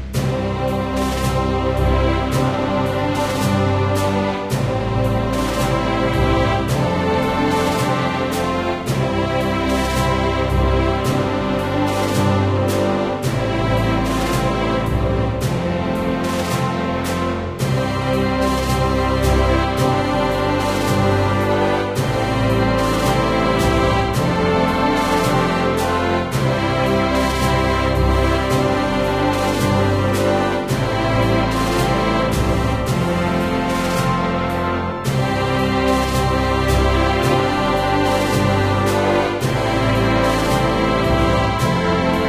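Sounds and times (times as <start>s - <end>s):
instrumental Franconian hymn: 0.1s - 42.2s.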